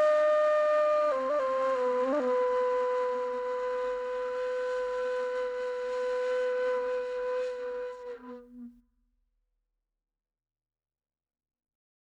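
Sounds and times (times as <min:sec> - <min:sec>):
Persian ney phrases: 0:00.0 - 0:08.7.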